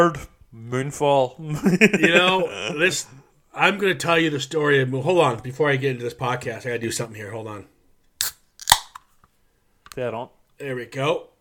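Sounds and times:
speech: 0.0s - 7.8s, 10.0s - 11.3s
laughter: 1.4s - 3.2s
beer being cracked open: 8.2s - 9.1s.

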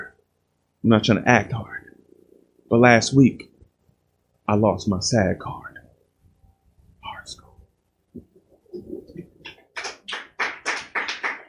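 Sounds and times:
speech: 0.8s - 1.8s, 2.7s - 3.5s, 4.5s - 5.7s, 7.2s - 7.4s
audience clapping: 9.4s - 11.4s.

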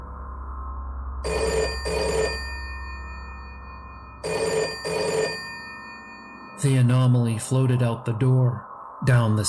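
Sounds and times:
low steady hum: 0.0s - 9.4s
telephone bell ringing in shrill buzzy double bursts: 1.2s - 6.9s
speech: 6.6s - 9.4s.

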